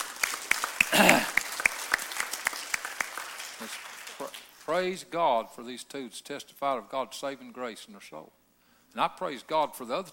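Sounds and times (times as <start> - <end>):
audience clapping: 0.0 - 4.8
speech: 4.7 - 8.4, 9.0 - 10.1.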